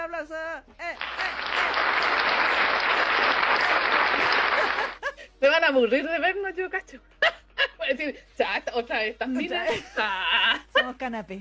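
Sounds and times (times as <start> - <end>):
speech: 0.2 - 1.4, 4.6 - 7.2, 7.9 - 11.3
crowd applause: 1.0 - 5.0
laughter: 1.0 - 5.3, 9.4 - 11.0.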